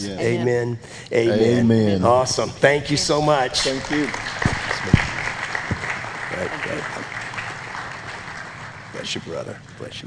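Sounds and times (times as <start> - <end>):
speech: 0.0 - 5.0, 9.1 - 10.0
audience applause: 3.4 - 9.5.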